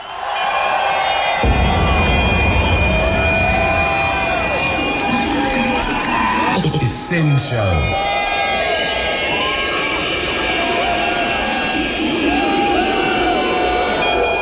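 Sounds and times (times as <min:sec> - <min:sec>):
club crowd in Plymouth cheering and clapping: 0:00.0 - 0:14.3
deep rumble: 0:01.4 - 0:06.5
speech: 0:07.1 - 0:08.2.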